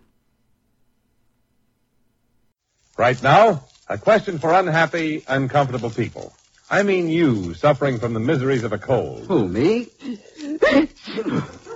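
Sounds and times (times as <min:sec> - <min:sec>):
speech: 0:03.0 - 0:11.6
laughter: 0:09.2 - 0:11.7
sneeze: 0:10.0 - 0:11.7.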